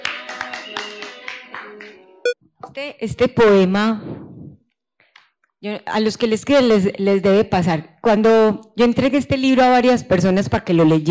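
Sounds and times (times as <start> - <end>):
audience clapping: 0.0 - 1.6
speech: 2.7 - 4.3, 5.6 - 11.0.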